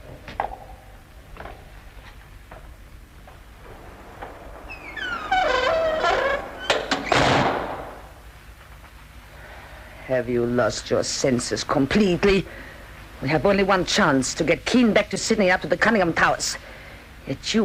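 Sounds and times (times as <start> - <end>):
door being bolted shut: 3.6 - 7.8
speech: 10.1 - 16.7, 17.3 - 17.6.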